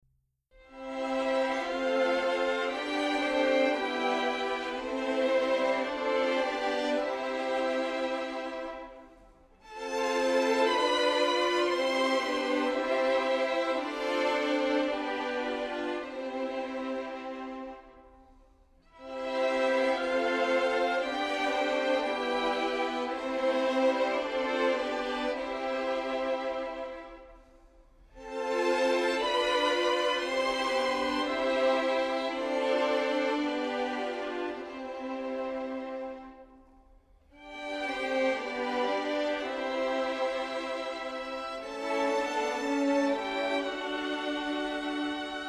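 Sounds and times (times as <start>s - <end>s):
violins playing a chorale: 0.6s - 45.4s.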